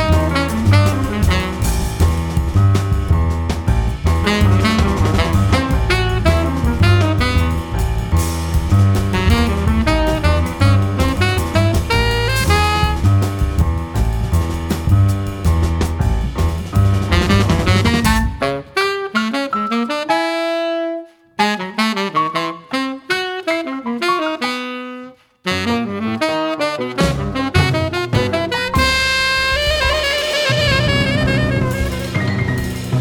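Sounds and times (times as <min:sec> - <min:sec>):
jazz saxophone: 0:00.0 - 0:02.1, 0:04.2 - 0:07.8, 0:09.1 - 0:13.4, 0:17.1 - 0:32.9
jazz double bass: 0:00.0 - 0:18.7, 0:25.5 - 0:32.9
jazz drums: 0:00.0 - 0:19.5, 0:25.6 - 0:32.9
jazz piano: 0:00.0 - 0:32.9.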